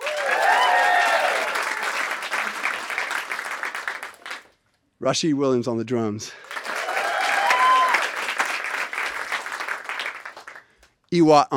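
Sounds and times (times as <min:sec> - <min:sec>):
audience cheering and applause: 0:00.0 - 0:04.5, 0:06.4 - 0:10.6
speech: 0:05.0 - 0:06.5, 0:11.1 - 0:11.5.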